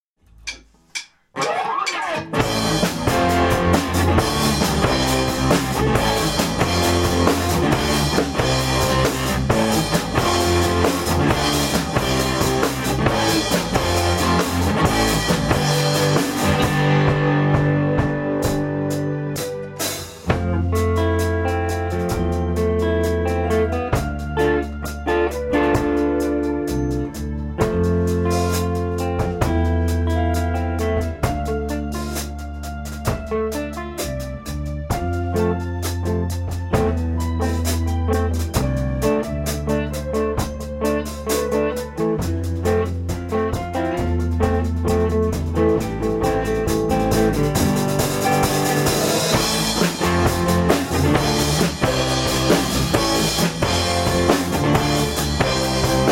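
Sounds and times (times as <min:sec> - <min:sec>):
instrumental music: 0:00.2 - 0:56.1.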